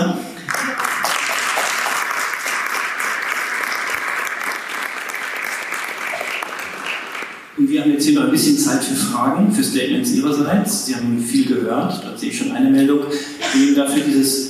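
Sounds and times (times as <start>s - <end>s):
audience applause: 0.5s - 7.5s
speech: 7.8s - 14.4s.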